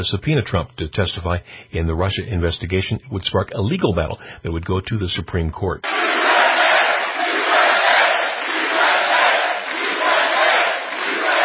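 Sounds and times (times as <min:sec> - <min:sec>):
speech: 0:00.0 - 0:06.2
enthusiastic rally crowd cheering in a Cleveland suburb: 0:05.8 - 0:11.4.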